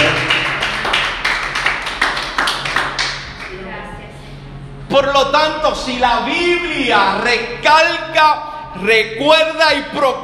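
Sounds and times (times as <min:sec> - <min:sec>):
audience applause: 0:00.0 - 0:03.2
speech: 0:05.0 - 0:10.2.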